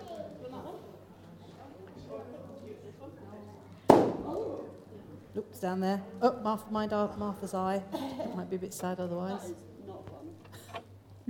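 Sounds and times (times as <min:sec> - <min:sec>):
low murmuring voices: 0:00.0 - 0:11.2
balloon popping: 0:03.9 - 0:04.4
speech: 0:05.4 - 0:09.7.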